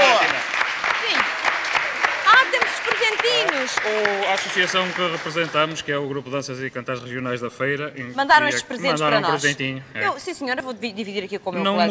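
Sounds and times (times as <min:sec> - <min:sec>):
studio audience applause: 0:00.0 - 0:05.8
speech: 0:03.8 - 0:11.9.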